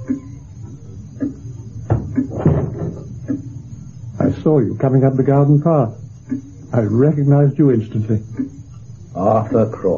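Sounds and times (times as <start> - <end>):
door closing: 1.9 - 3.1
speech: 4.5 - 8.6, 9.2 - 9.9.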